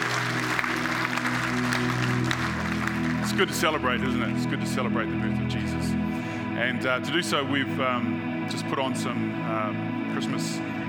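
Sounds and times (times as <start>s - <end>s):
audience clapping: 0.0s - 4.4s
speech: 3.4s - 6.0s, 6.6s - 10.7s.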